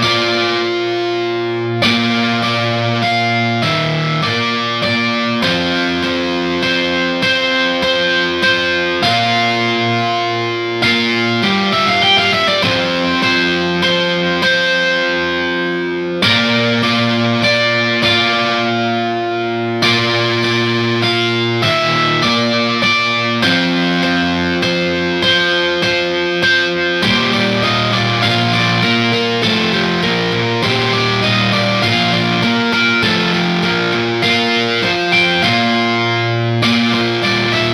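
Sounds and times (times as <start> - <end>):
guitar: 0.0 - 37.7.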